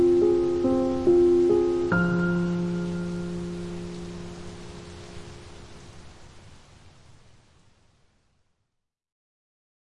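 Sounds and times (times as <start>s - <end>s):
calming piano waltz: 0.0s - 5.7s
rain: 0.0s - 8.8s.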